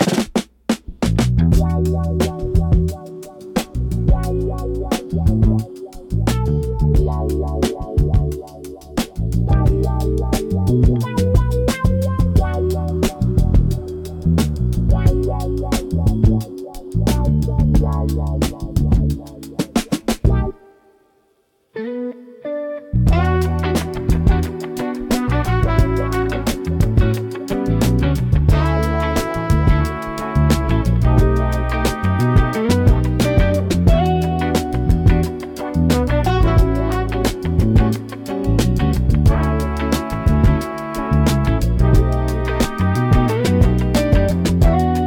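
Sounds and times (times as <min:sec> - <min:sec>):
chill music: 0:00.9 - 0:45.0.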